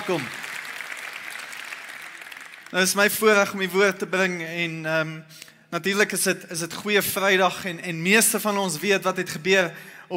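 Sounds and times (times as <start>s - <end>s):
audience applauding and clapping hands: 0.0s - 3.0s
speech: 0.1s - 0.4s, 2.7s - 10.1s.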